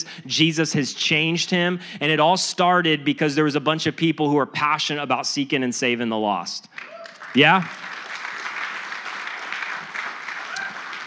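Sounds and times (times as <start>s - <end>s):
speech: 0.2s - 7.9s
light polite applause from a small audience: 6.7s - 11.0s.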